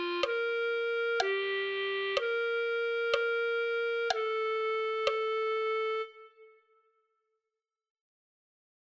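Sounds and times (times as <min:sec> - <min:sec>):
clarinet: 0:00.0 - 0:06.8.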